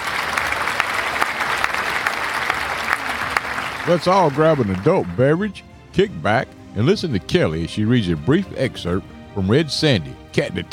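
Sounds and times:
audience round of applause for a book rating: 0:00.0 - 0:05.5
speech: 0:03.9 - 0:10.7.

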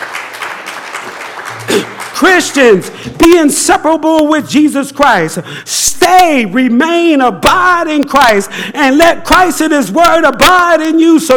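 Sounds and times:
audience clapping hands: 0:00.0 - 0:03.2
speech: 0:01.7 - 0:11.3.

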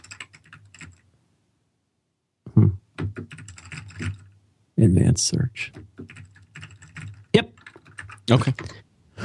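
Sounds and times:
computer keyboard typing during a search: 0:00.0 - 0:01.0, 0:02.9 - 0:04.4, 0:05.7 - 0:08.8
speech: 0:04.8 - 0:05.8, 0:08.3 - 0:08.7.

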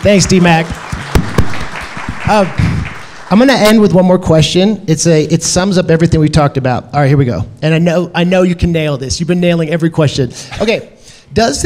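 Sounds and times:
speech: 0:00.0 - 0:01.6, 0:02.3 - 0:11.6
audience applause: 0:00.0 - 0:04.0.

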